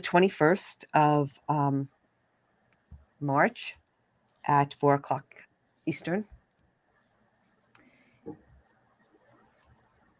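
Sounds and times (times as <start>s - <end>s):
speech: 0.0s - 2.0s, 3.2s - 3.8s, 4.5s - 6.4s
pen scratching on paper writing notes by hand: 8.4s - 10.1s.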